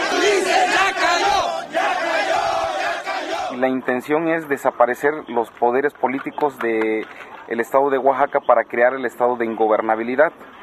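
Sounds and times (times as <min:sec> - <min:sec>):
crowd chanting protest slogan in unison: 0:00.0 - 0:03.6
speech: 0:03.6 - 0:10.6.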